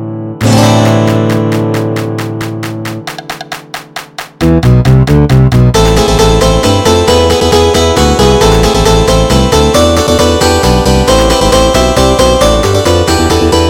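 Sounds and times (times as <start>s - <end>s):
MIDI flamenco music: 0.4s - 13.6s.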